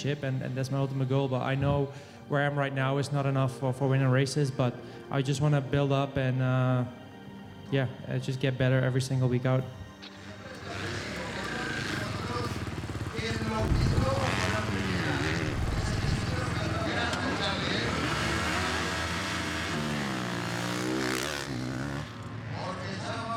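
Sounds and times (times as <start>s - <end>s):
speech: 0.0s - 7.0s, 7.7s - 10.1s
racing motorcycle engine running: 10.2s - 22.8s.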